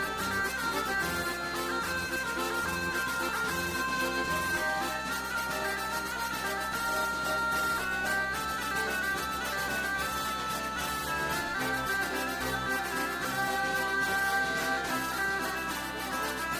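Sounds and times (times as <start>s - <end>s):
bourree dance music: 0.0s - 16.5s.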